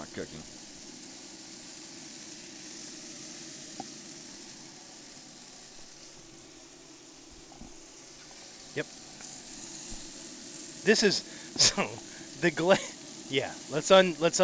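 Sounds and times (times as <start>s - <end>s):
chicken sizzling as it cooks: 0.0s - 14.4s
speech: 0.2s - 0.6s, 8.8s - 9.0s, 10.8s - 14.4s.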